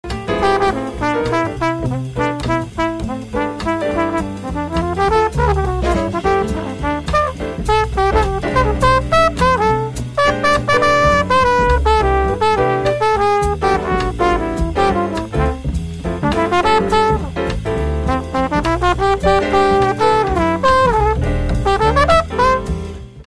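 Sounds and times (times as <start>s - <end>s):
flugelhorn: 0.2s - 17.4s, 18.0s - 23.0s.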